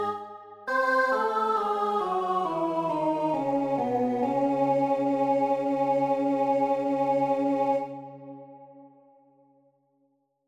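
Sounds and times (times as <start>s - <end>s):
alto voice singing: 0.0s - 8.3s.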